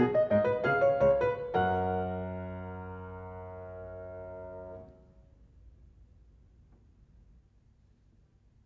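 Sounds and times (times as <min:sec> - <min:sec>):
prelude and fugue on clavier: 0:00.0 - 0:04.8.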